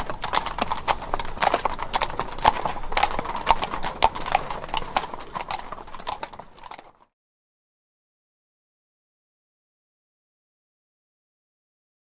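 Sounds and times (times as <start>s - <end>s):
cavalry horses walking on cobblestones: 0.0s - 7.1s.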